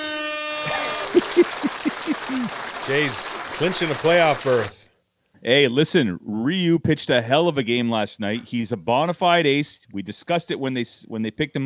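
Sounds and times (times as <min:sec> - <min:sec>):
air horn blast: 0:00.0 - 0:03.8
laughter: 0:00.6 - 0:04.8
speech: 0:02.5 - 0:04.8, 0:05.4 - 0:11.6.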